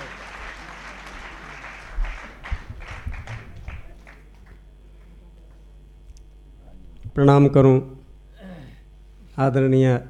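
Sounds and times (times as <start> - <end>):
crowd applauding welcoming a poet: 0.0 - 5.6
speech: 7.2 - 8.0, 9.4 - 10.0.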